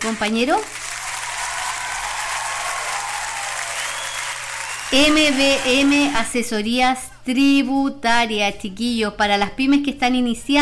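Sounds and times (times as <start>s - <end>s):
speech: 0.0s - 0.9s, 4.9s - 10.6s
audience applause: 0.0s - 6.3s.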